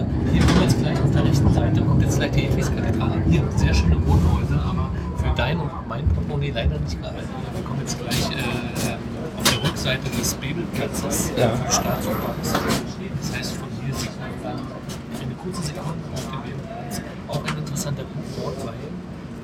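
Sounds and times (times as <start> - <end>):
city bus interior in Berlin: 0.0 - 19.4.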